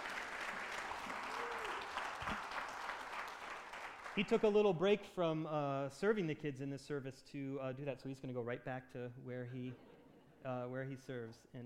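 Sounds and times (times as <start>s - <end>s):
audience applause: 0.0s - 4.5s
speech: 4.2s - 11.6s.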